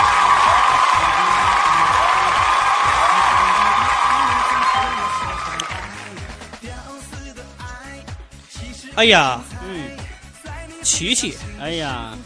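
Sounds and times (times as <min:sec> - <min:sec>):
audience applause: 0:00.0 - 0:06.6
speech: 0:09.0 - 0:09.5, 0:10.8 - 0:12.2.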